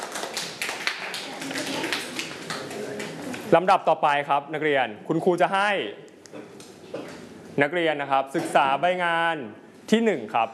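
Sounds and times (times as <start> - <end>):
classroom students clapping hands: 0.0 - 3.2
speech: 3.5 - 6.5, 7.6 - 10.5.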